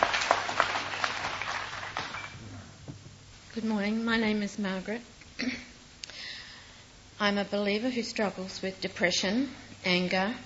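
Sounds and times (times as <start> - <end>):
audience applauding to welcome a speaker: 0.0 - 2.6
speech: 3.6 - 5.5, 7.2 - 10.4.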